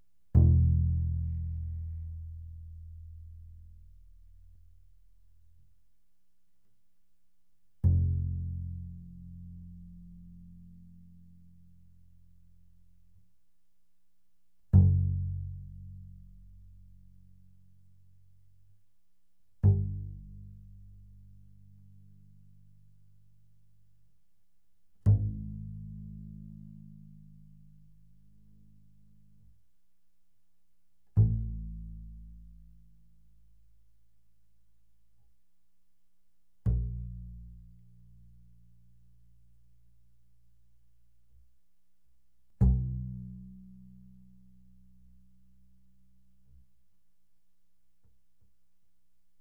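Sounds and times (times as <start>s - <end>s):
loud double bass pizzicato on the E string: 0.3s - 5.7s, 7.8s - 13.2s, 14.7s - 18.8s, 19.5s - 24.2s, 25.0s - 29.7s, 31.1s - 35.0s, 36.6s - 41.6s, 42.5s - 46.9s.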